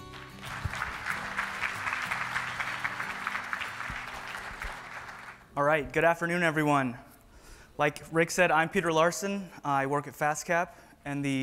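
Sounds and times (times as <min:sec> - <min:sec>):
audience applause at the Global Lean Leadership Summit 2019 in Riverside, California: 0:00.0 - 0:05.5
speech: 0:05.6 - 0:07.1, 0:07.8 - 0:11.4.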